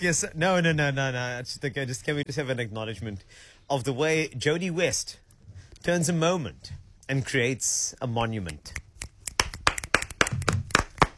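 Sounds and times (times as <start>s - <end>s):
speech: 0.0s - 5.2s, 5.8s - 8.8s
scattered handclaps from a small chat show audience: 9.3s - 11.1s.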